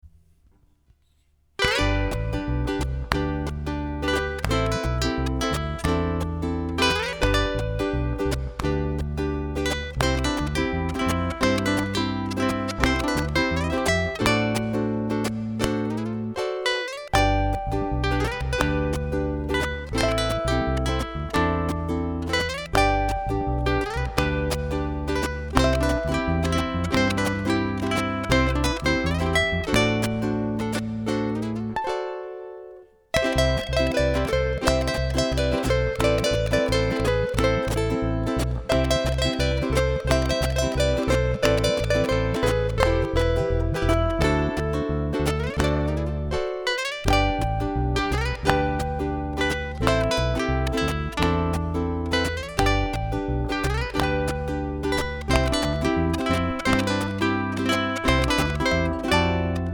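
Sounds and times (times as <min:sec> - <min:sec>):
short ukulele song with slide: 0:00.0 - 0:59.7.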